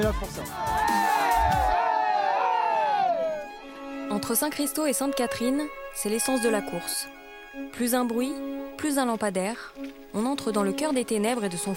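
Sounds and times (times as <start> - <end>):
speech: 0.0 - 0.8, 4.1 - 11.7
spectators cheering and shouting encouragement for passing runners: 0.5 - 3.6.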